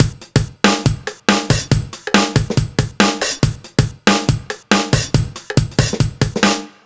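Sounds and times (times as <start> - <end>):
drum loop fill: 0.0 - 6.8.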